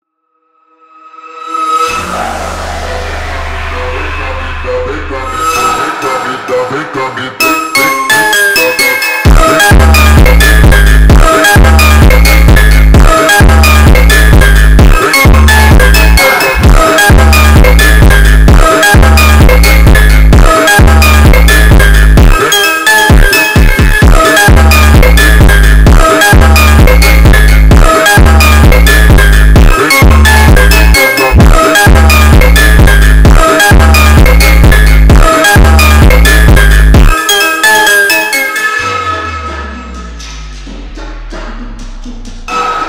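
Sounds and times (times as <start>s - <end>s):
montagem phonk music: 1.8s - 42.8s.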